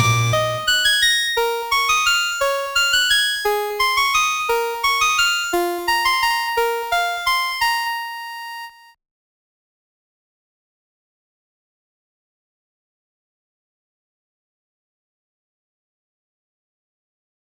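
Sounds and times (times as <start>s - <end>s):
Celtic harp: 0.0s - 8.6s.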